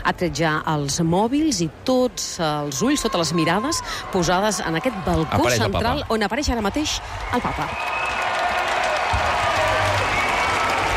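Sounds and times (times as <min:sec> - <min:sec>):
speech: 0:00.1 - 0:08.1
large crowd applauding and cheering in a square: 0:03.2 - 0:10.9.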